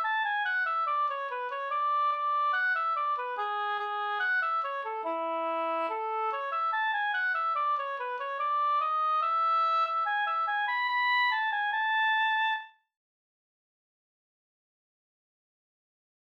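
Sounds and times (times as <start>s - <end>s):
music in A major: 0.0s - 13.0s.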